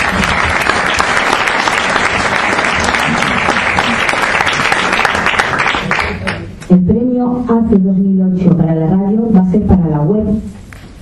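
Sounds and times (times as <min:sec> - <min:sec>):
audience applause: 0:00.0 - 0:06.5
speech: 0:07.5 - 0:10.6.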